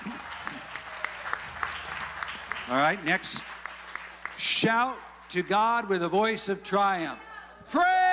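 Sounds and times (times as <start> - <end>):
group clapping in a steady rhythm: 0.0 - 5.5
speech: 2.7 - 3.5, 4.4 - 8.0.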